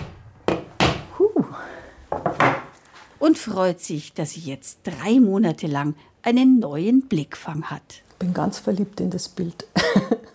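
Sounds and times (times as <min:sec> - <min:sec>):
hammer striking a nail into a wall: 0:00.0 - 0:01.1
speech: 0:03.2 - 0:10.3.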